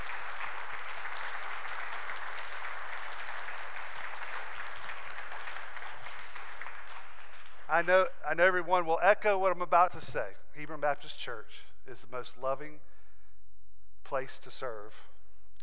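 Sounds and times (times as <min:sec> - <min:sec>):
audience applause: 0:00.0 - 0:07.9
speech: 0:07.8 - 0:12.9, 0:14.1 - 0:15.1.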